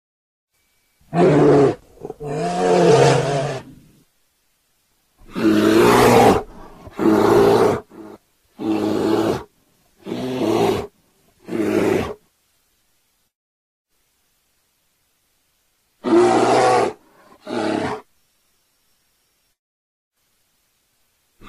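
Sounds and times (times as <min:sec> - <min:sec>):
bear snarling and giving deep rumbling roars: 0:01.1 - 0:04.0, 0:05.2 - 0:12.2, 0:16.0 - 0:18.1.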